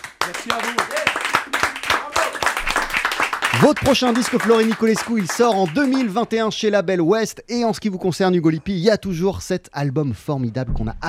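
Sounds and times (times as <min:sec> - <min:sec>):
crowd applause: 0:00.0 - 0:06.3
speech: 0:00.4 - 0:01.6, 0:03.6 - 0:11.0.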